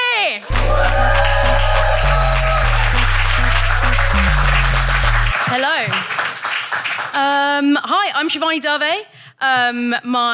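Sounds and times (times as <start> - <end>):
crowd clapping: 0.3 - 7.4
booming walk-on music with a heavy stepping bass line: 0.5 - 5.3
audience whooping and cheering: 0.5 - 5.4
audience stomping: 0.5 - 6.8
speech: 7.2 - 10.3.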